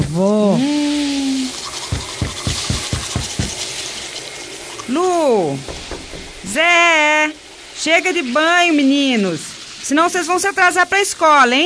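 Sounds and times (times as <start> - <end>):
speech: 0.2 - 0.8, 5.0 - 5.8, 6.6 - 11.6
toothbrush scrubbing teeth in a bathroom: 1.5 - 3.9.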